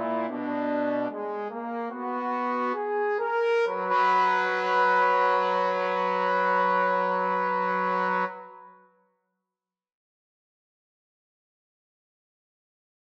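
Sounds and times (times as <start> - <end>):
trombone trio: 0.0 - 8.6.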